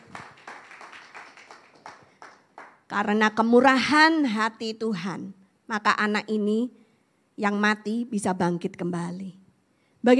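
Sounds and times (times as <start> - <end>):
audience clapping: 0.0 - 2.9
speech: 2.9 - 6.8, 7.4 - 9.4.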